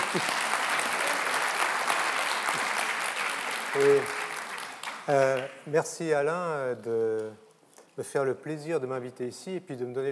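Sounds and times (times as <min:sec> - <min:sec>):
audience applause: 0:00.0 - 0:05.5
speech: 0:00.1 - 0:00.4, 0:03.8 - 0:04.2, 0:05.1 - 0:07.4, 0:08.0 - 0:10.1.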